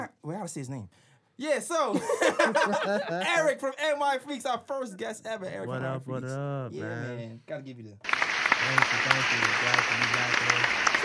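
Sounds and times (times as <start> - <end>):
speech: 0.3 - 11.0
laughter: 1.9 - 3.6
applause: 8.0 - 11.0.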